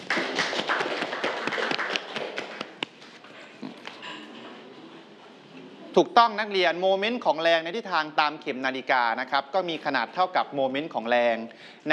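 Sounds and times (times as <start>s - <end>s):
classroom applause: 0.0s - 2.9s
speech: 6.0s - 11.9s.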